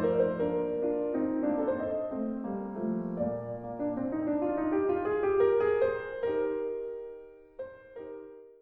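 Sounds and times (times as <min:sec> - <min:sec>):
piano sonata in E-flat major: 0:00.0 - 0:08.6.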